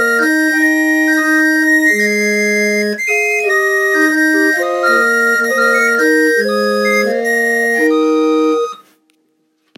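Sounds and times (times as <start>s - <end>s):
barrel organ playing: 0.0s - 8.8s.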